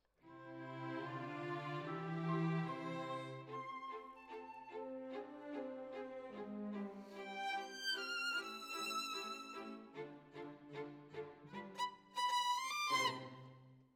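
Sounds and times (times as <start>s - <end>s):
violin solo: 0.3s - 13.6s.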